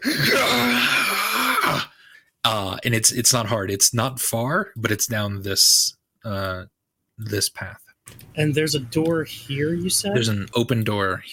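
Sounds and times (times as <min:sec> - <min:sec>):
person screaming in rage: 0:00.0 - 0:01.9
speech: 0:02.5 - 0:11.3.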